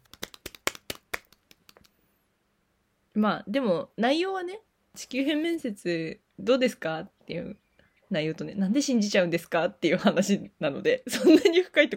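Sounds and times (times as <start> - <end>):
hand clapping: 0.0 - 1.9
speech: 3.2 - 11.9.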